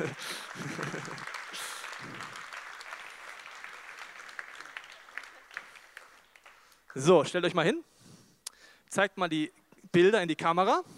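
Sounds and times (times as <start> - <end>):
laughter: 0.0 - 1.8
speech: 0.0 - 2.4, 6.9 - 7.9, 8.9 - 10.9
audience applause: 0.0 - 7.2.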